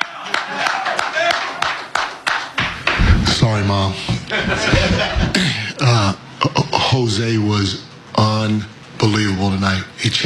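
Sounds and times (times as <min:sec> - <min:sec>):
person clapping: 0:00.0 - 0:03.1
speech: 0:03.6 - 0:10.2
laughter: 0:04.1 - 0:06.2.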